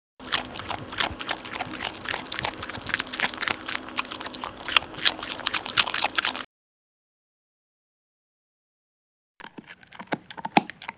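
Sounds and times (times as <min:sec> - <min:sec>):
dog eating: 0:00.2 - 0:06.5, 0:09.4 - 0:10.9.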